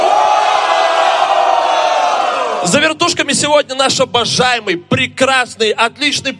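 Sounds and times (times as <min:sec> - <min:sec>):
audience cheering and shouting: 0:00.0 - 0:02.8
speech: 0:02.7 - 0:06.3.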